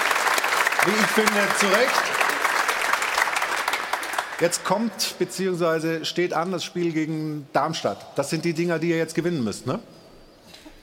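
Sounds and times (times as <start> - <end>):
applause from the panel: 0.0 - 4.9
speech: 0.8 - 2.3, 4.4 - 9.9.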